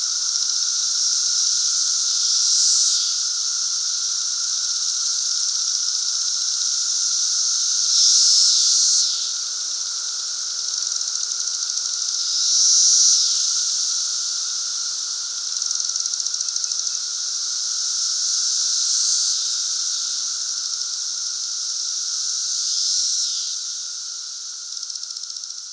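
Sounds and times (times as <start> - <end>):
periodical cicada chorus droning: 0.0 - 25.7.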